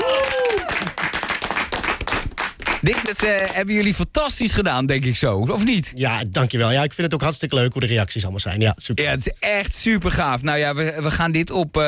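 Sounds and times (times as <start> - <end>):
audience applause: 0.0 - 3.6
speech: 2.8 - 11.8.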